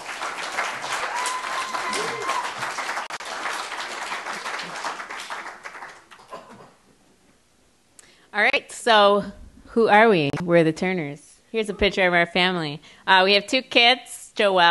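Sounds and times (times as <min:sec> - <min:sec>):
loud audience applause: 0:00.0 - 0:06.4
speech: 0:08.6 - 0:14.6.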